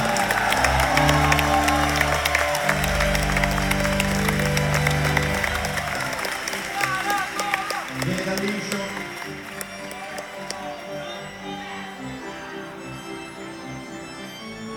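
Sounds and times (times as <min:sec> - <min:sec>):
audience applause: 0:00.0 - 0:11.5.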